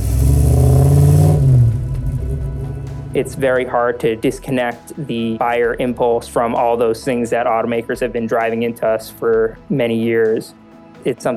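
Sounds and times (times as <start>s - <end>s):
V8 sports car engine revving: 0.0s - 4.4s
speech: 3.2s - 11.3s.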